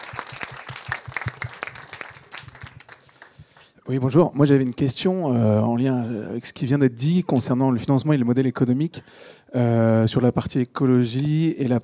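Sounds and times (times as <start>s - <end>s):
audience applause: 0.0s - 3.4s
speech: 3.9s - 11.8s.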